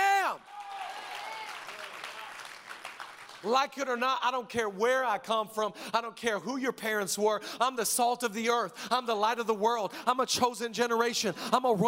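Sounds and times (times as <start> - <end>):
audience clapping: 0.4 - 3.8
speech: 3.4 - 11.8.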